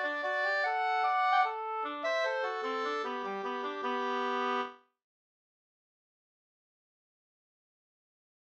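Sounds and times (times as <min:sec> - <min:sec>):
waltz music: 0:00.0 - 0:04.7.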